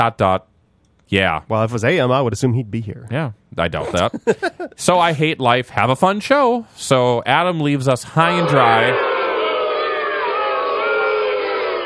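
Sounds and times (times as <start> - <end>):
speech: 0.0 - 0.5, 1.1 - 9.1
laughter: 3.8 - 5.3
unhappy crowd reaction: 8.2 - 11.8.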